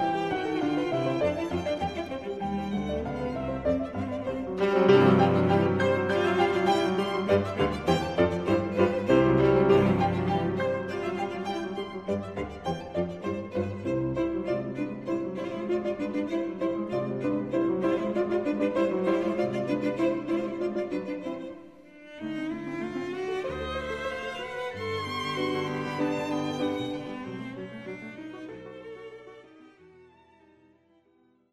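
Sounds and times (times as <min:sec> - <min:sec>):
Russian piano trio playing: 0:00.0 - 0:21.4, 0:23.5 - 0:27.6.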